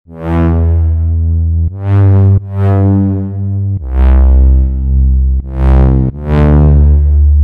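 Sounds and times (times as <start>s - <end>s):
bass: 0.0s - 7.4s.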